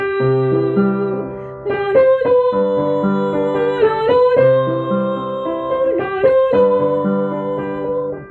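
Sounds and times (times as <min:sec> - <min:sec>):
sopranos singing: 0:00.2 - 0:08.2.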